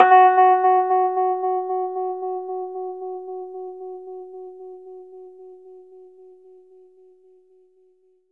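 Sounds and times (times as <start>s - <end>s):
Rhodes electric piano playing fast in F-sharp: 0.0s - 2.8s.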